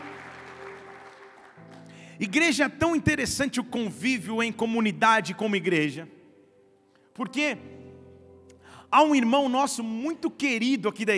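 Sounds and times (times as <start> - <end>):
audience applauding: 0.0 - 2.2
speech: 2.2 - 6.2, 7.2 - 7.7, 8.9 - 11.1.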